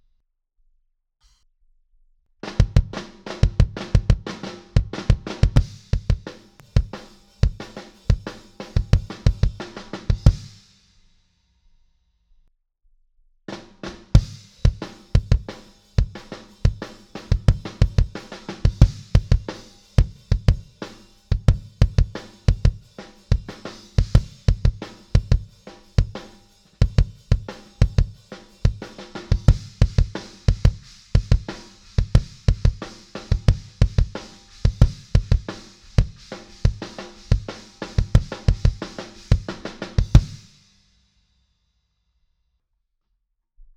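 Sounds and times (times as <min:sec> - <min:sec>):
kick drum: 0:02.4 - 0:10.6, 0:14.1 - 0:20.7, 0:21.3 - 0:26.2, 0:26.8 - 0:40.5.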